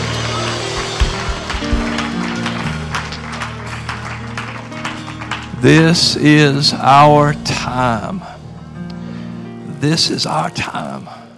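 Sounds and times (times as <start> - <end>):
audience shouting praise: 0.0 - 3.4
audience hand clapping: 0.0 - 6.6
speech: 5.6 - 8.3, 9.8 - 11.2.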